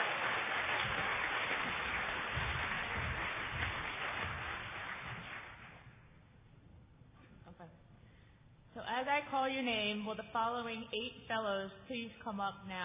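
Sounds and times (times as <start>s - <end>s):
crowd applauding: 0.0s - 5.9s
speech: 9.0s - 12.8s.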